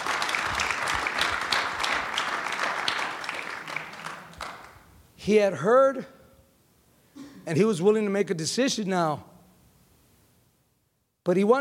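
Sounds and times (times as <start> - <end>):
audience applause: 0.0 - 4.8
speech: 5.2 - 6.2, 7.4 - 9.3, 11.3 - 11.5.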